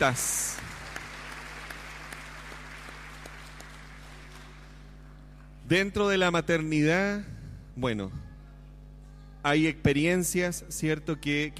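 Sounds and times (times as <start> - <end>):
speech: 0.0 - 0.4, 5.7 - 8.3, 9.4 - 11.5
audience applause: 0.0 - 4.9
low electrical hum: 0.0 - 11.5.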